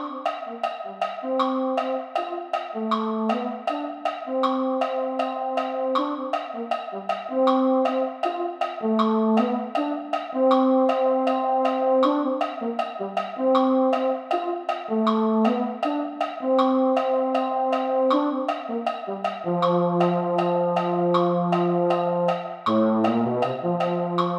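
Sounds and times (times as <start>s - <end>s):
baritone: 0.0s - 24.3s.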